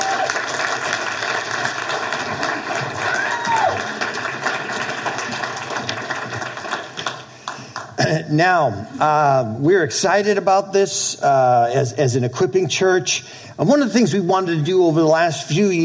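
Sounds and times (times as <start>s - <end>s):
church audience clapping as guest speakers come on stage: 0.0s - 8.1s
speech: 8.3s - 15.8s.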